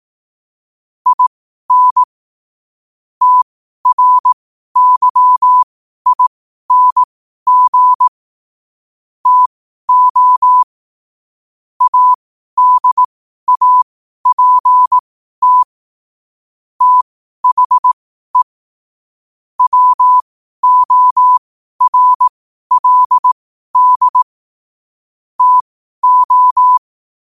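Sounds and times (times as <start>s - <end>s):
morse code at 5 wpm: 1.1s - 2.1s, 3.2s - 8.1s, 9.2s - 10.7s, 11.8s - 15.7s, 16.8s - 18.5s, 19.6s - 24.3s, 25.4s - 26.8s.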